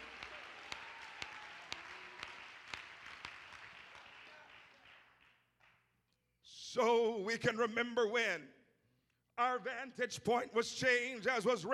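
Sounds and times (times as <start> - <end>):
people clapping: 0.0 - 6.2
speech: 6.8 - 8.6, 9.4 - 11.7.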